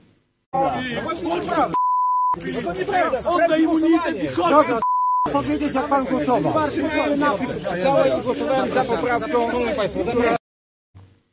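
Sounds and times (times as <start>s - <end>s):
speech: 0.8s - 10.4s
censorship bleep over a word: 1.7s - 2.4s, 4.8s - 5.3s.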